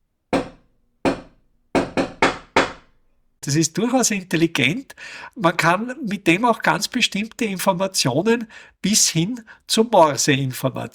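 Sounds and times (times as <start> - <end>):
knocking on a door: 0.3 - 2.9
speech: 3.4 - 10.9.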